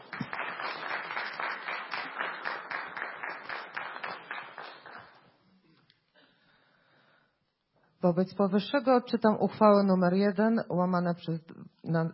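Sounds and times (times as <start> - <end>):
audience applause: 0.0 - 5.3
speech: 8.0 - 12.1.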